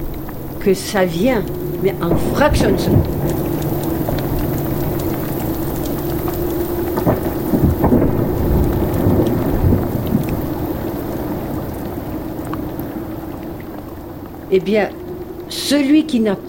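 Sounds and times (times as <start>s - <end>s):
low rolling rumbles of thunder: 0.0s - 16.4s
thunderstorm rain pattering: 0.0s - 16.4s
speech: 0.6s - 3.8s, 14.5s - 16.4s.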